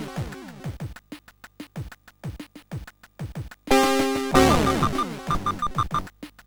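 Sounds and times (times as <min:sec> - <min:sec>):
intro on CSG8580R5 sound chip: 0:03.7 - 0:06.1.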